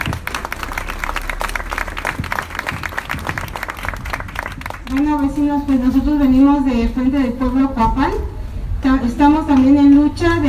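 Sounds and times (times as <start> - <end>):
crowd applause: 0.0 - 5.0
speech: 4.9 - 10.4.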